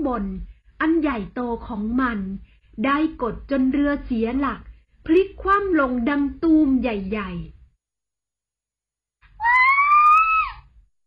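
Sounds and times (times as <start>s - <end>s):
speech: 0.1s - 7.6s
woman screaming in fright: 9.4s - 10.7s.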